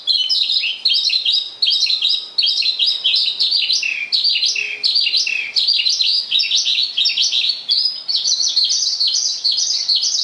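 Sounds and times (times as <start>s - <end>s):
Javan bush lark song: 0.0s - 10.2s.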